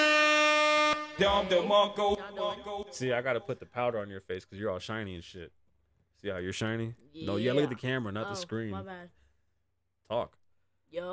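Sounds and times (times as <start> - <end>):
air horn blast: 0.0 - 2.1
speech: 1.2 - 5.6, 6.2 - 9.2, 10.1 - 11.1.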